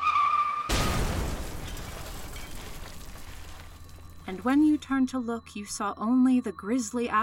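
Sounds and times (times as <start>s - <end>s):
tire screech: 0.0s - 0.7s
head-on car crash impact: 0.7s - 4.3s
debris rumble: 0.7s - 5.1s
speech: 4.3s - 7.2s.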